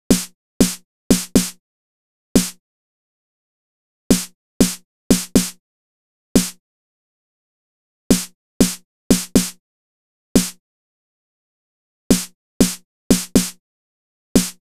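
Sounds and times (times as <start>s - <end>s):
snare drum: 0.1s - 1.6s, 2.4s - 2.6s, 4.1s - 5.6s, 6.4s - 6.6s, 8.1s - 9.6s, 10.4s - 10.6s, 12.1s - 13.6s, 14.4s - 14.6s.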